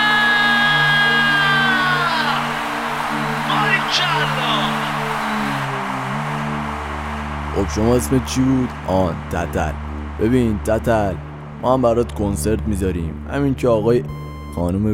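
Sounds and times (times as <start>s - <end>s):
crowd screaming: 0.0s - 11.6s
speech: 7.6s - 14.9s.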